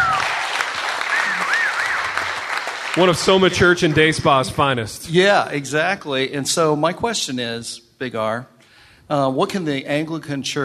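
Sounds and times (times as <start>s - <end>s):
audience applause: 0.0s - 4.8s
speech: 3.0s - 8.5s, 9.1s - 10.6s.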